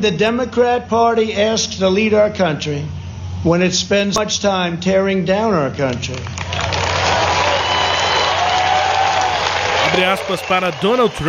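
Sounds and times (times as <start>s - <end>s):
speech: 0.0s - 6.8s, 9.9s - 11.2s
Republican Party convention crowd applause: 6.4s - 11.2s.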